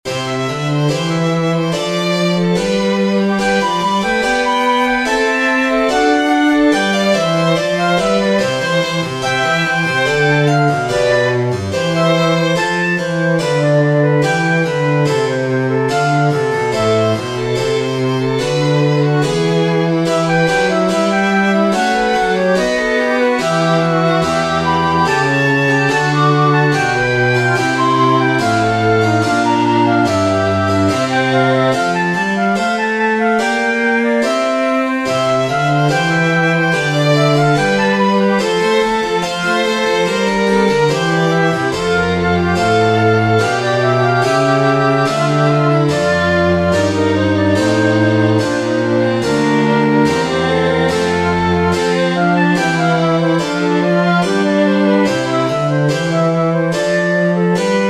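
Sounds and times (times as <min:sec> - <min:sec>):
trio sonata in C major: 0:00.0 - 0:57.8.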